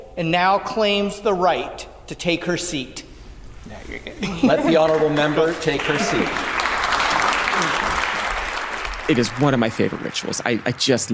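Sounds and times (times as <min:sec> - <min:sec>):
speech: 0:00.2 - 0:06.5, 0:09.1 - 0:11.1
laughter: 0:04.1 - 0:08.4
applause in the legislative house: 0:04.7 - 0:11.1.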